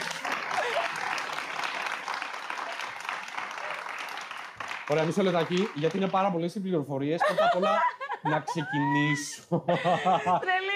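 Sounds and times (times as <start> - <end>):
laughter: 0.0 - 1.3, 7.2 - 10.7
applause: 0.0 - 6.4
speech: 4.9 - 10.6.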